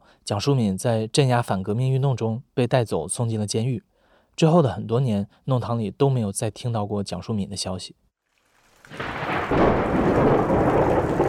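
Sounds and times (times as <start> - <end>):
speech: 0.2 - 8.0
heavy rain: 8.4 - 11.2
low rumble of thunder: 8.8 - 11.2.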